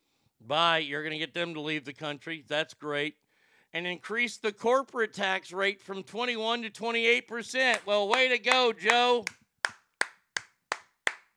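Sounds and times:
speech: 0:00.5 - 0:09.4
clapping: 0:07.7 - 0:11.3.

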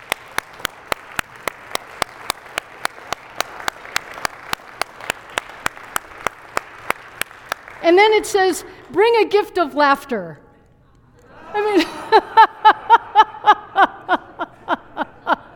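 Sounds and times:
audience clapping in rhythm: 0:00.0 - 0:09.1
speech: 0:07.8 - 0:10.4
laughter: 0:11.2 - 0:15.5.

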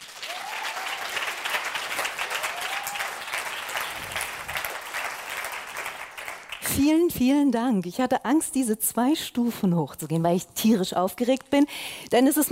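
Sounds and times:
audience applause: 0:00.0 - 0:06.7
speech: 0:06.8 - 0:12.5.

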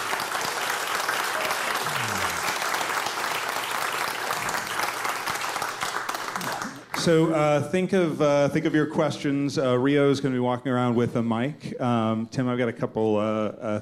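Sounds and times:
audience applause: 0:00.0 - 0:07.0
speech: 0:07.0 - 0:13.8.

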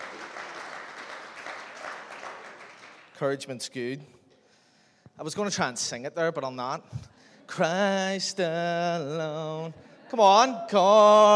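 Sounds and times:
audience clapping for worship team: 0:00.0 - 0:03.3
speech: 0:03.2 - 0:04.2, 0:05.2 - 0:11.3.

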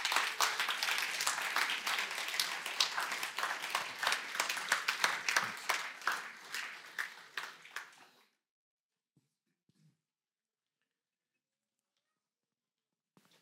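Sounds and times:
church congregation clapping at an Eldership Sunday service: 0:00.0 - 0:08.2.

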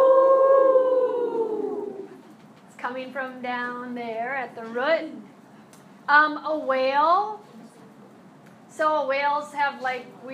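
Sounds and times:
person howling like a wolf: 0:00.0 - 0:02.2
speech: 0:03.1 - 0:05.4, 0:06.1 - 0:07.4, 0:08.8 - 0:10.3.

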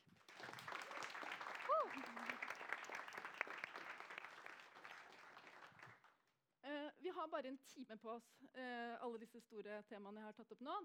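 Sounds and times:
audience applause: 0:00.2 - 0:06.0
speech: 0:07.2 - 0:10.8.

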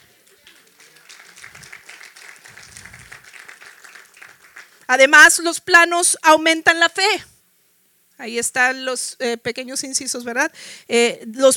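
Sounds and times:
low voices murmuring: 0:00.0 - 0:04.4
audience applauding: 0:00.0 - 0:05.0
speech: 0:04.9 - 0:07.3, 0:08.2 - 0:11.5.

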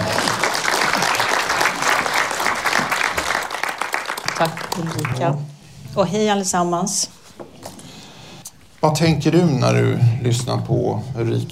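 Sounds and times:
audience applause: 0:00.0 - 0:05.4
speech: 0:04.4 - 0:07.2, 0:08.8 - 0:11.5.

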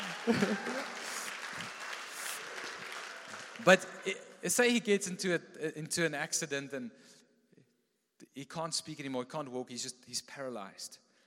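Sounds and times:
laughter: 0:00.0 - 0:01.4
audience shouts and whoops: 0:00.0 - 0:01.7
audience applause: 0:00.0 - 0:04.4
speech: 0:00.2 - 0:01.0, 0:03.6 - 0:07.2, 0:08.4 - 0:11.0.

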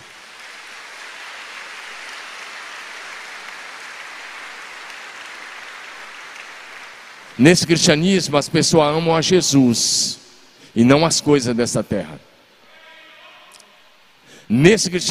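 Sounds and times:
audience applauding: 0:00.0 - 0:08.0
speech: 0:07.4 - 0:10.2, 0:10.8 - 0:12.3, 0:14.5 - 0:15.0.

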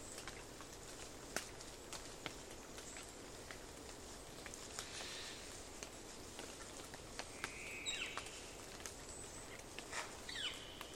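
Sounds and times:
low rushing hiss in Queets River Valley rainforest: 0:00.0 - 0:10.9
bird chirps: 0:07.4 - 0:08.5, 0:10.3 - 0:10.9.

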